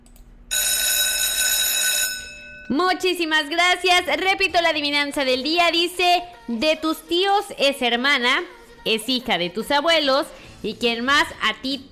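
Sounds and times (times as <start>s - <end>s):
alarm ringing: 0.5s - 3.0s
speech: 2.7s - 11.9s.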